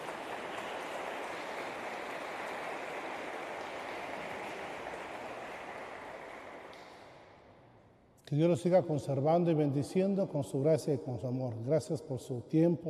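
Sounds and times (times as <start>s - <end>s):
crowd applause for an anniversary couple: 0.0s - 6.9s
speech: 8.3s - 12.8s.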